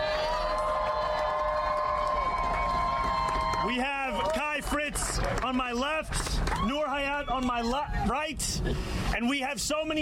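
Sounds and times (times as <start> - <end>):
audience cheering with high shouts and whoops: 0.0 - 5.5, 6.4 - 8.2
audience applause: 0.0 - 6.8
speech: 4.6 - 10.0.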